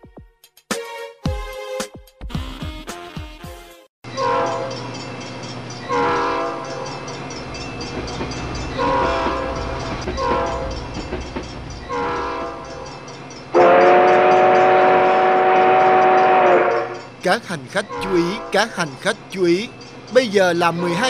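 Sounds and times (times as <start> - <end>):
multi-tone train horn: 4.1 - 4.8, 5.9 - 6.8, 8.8 - 10.8, 11.9 - 12.8, 13.6 - 17.1
train rumbling and clattering: 4.1 - 21.0
speech: 17.3 - 21.0.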